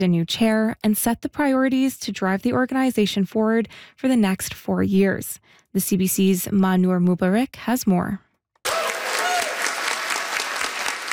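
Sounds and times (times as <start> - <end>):
speech: 0.0 - 8.3
audience applause after declaration approval: 8.6 - 11.1.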